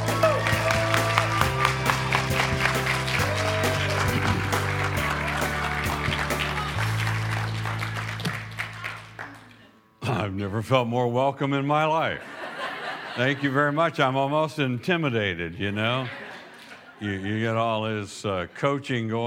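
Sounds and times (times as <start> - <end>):
crowd applauding a guest speaker welcomed on stage: 0.0 - 9.8
speech: 10.5 - 12.4, 13.2 - 16.2, 17.0 - 19.2
laughter: 12.2 - 14.4, 15.7 - 17.6.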